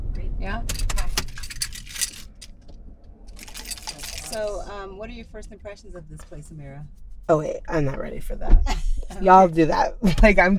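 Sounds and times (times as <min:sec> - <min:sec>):
car engine cutting off: 0:00.0 - 0:08.6
low rumble: 0:00.0 - 0:10.0
speech: 0:00.4 - 0:00.9, 0:04.3 - 0:10.5
keys jangling: 0:00.7 - 0:04.6.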